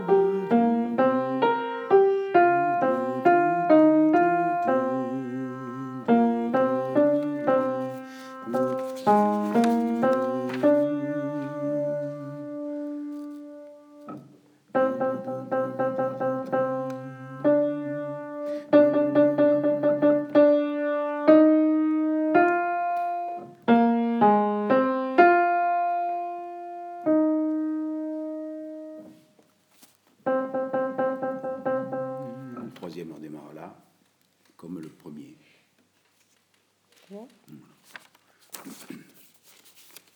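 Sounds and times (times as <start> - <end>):
alto voices singing: 0.0 - 29.2, 30.6 - 33.0.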